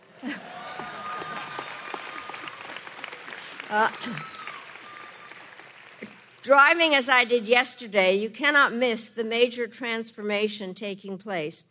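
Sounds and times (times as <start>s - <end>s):
commencement audience applause: 0.0s - 6.4s
speech: 3.7s - 4.4s, 6.4s - 11.6s.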